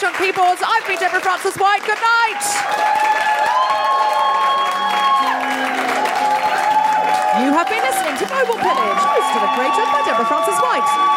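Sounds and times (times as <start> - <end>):
speech: 0.0 - 3.7, 7.4 - 11.1
audience applause: 0.0 - 11.1
cheers and whoops: 2.1 - 11.1.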